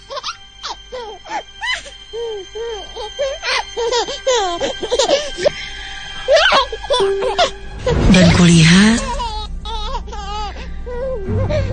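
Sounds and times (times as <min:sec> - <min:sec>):
speech: 0:02.1 - 0:05.5, 0:06.6 - 0:09.1
small baby giggling: 0:06.9 - 0:08.6.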